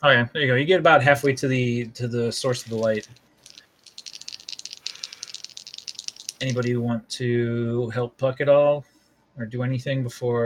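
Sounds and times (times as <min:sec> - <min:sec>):
speech: 0:00.0 - 0:03.3, 0:06.4 - 0:10.4
dice rolling: 0:02.4 - 0:06.8.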